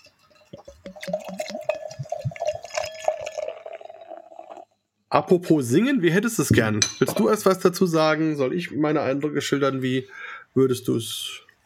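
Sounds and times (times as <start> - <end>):
wine poured into a glass: 0.2 - 4.7
speech: 5.1 - 11.4.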